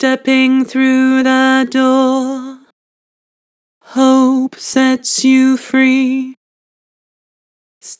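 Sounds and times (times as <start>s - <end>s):
person singing with vibrato: 0.0s - 2.7s, 3.8s - 6.4s.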